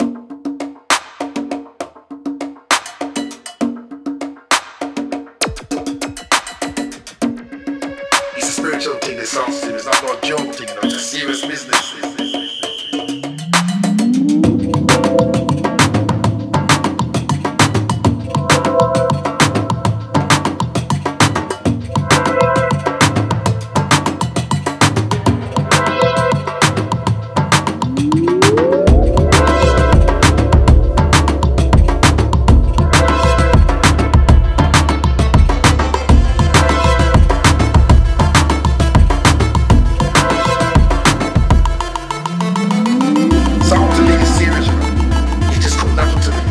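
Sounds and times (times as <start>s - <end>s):
drum breaks: 0.0s - 46.4s.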